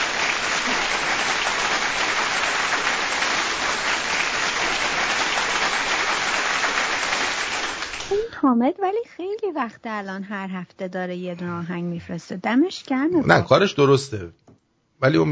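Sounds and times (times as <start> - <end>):
applause: 0.0 - 8.2
speech: 8.4 - 14.4, 15.0 - 15.2.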